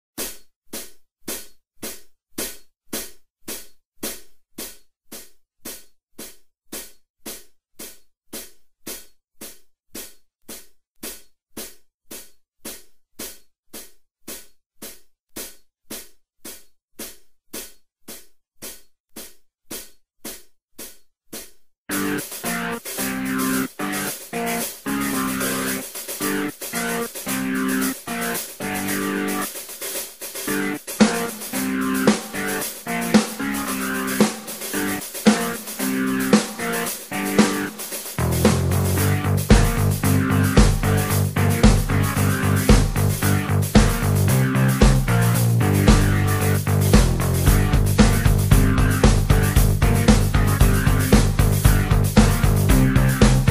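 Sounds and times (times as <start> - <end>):
backing track without guitar: 21.9 - 53.5.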